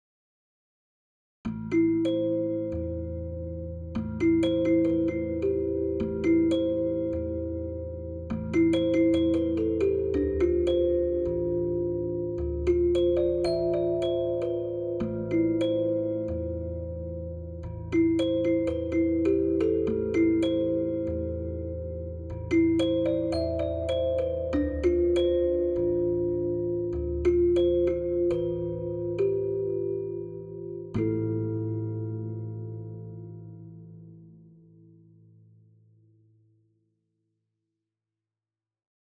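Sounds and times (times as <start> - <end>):
moody dance on celesta: 1.5 - 33.2.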